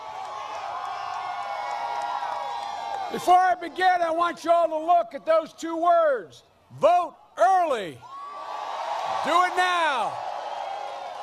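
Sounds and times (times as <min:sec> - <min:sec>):
large crowd cheering and shouting: 0:00.0 - 0:04.7, 0:08.0 - 0:11.2
speech: 0:03.1 - 0:08.1, 0:09.1 - 0:10.2.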